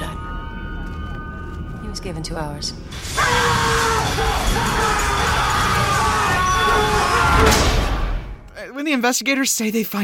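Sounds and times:
speech: 2.0s - 5.0s, 8.8s - 10.0s
compilation of people screaming: 3.0s - 8.3s.

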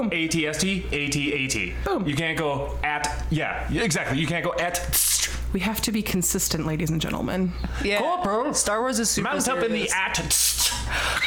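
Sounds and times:
speech: 0.0s - 11.2s
person sneezing: 10.3s - 11.2s.

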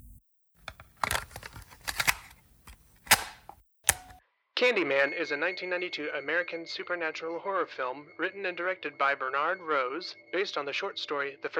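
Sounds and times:
cassette tape being inserted into player: 0.0s - 4.2s
speech: 4.6s - 11.5s.

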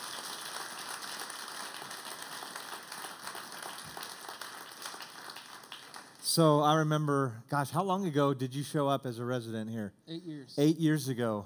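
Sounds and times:
audience applause: 0.0s - 6.3s
speech: 6.4s - 11.4s.

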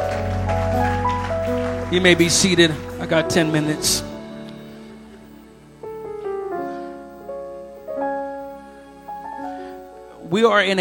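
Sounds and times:
audience clapping hands: 0.0s - 4.2s
speech: 1.9s - 4.1s, 10.3s - 10.7s.

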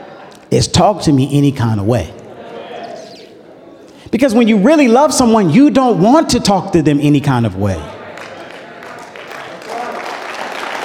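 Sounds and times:
speech: 0.5s - 2.2s, 4.1s - 7.9s
audience applause: 8.0s - 10.8s.

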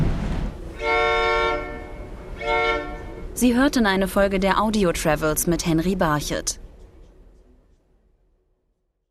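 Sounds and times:
passenger train running through mountains: 0.0s - 8.1s
passenger train horn blasts: 0.6s - 3.5s
speech: 3.4s - 6.6s.

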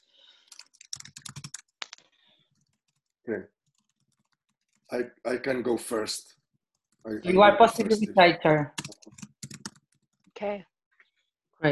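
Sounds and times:
computer keyboard typing: 0.4s - 5.0s, 8.7s - 10.4s
speech: 3.3s - 3.6s, 4.9s - 6.4s, 7.0s - 8.8s, 10.4s - 10.7s.

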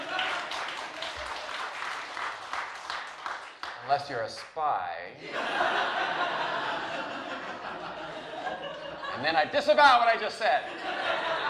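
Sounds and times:
laughter: 0.0s - 1.5s, 5.2s - 9.7s, 10.4s - 11.4s
crowd audience clapping: 0.0s - 4.8s
speech: 3.9s - 6.7s, 9.2s - 11.4s.

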